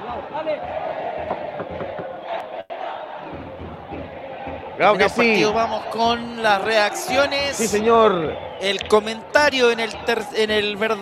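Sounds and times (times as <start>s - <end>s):
football fans chanting in stadium: 0.0s - 11.0s
speech: 0.1s - 1.8s, 4.8s - 11.0s.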